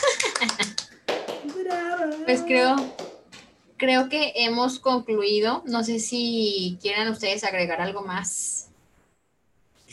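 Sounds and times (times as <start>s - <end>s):
applause: 0.0s - 3.3s
speech: 2.3s - 3.0s, 3.8s - 8.5s.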